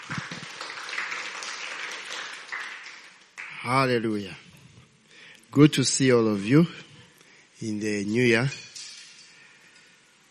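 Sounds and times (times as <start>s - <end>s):
audience hand clapping: 0.0s - 3.8s
speech: 3.6s - 4.5s, 5.5s - 6.9s, 7.6s - 8.7s.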